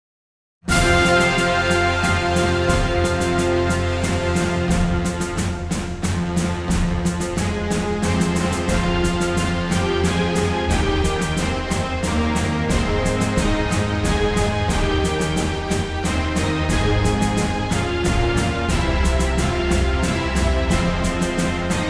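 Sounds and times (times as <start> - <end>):
brass music: 0.7 - 21.8.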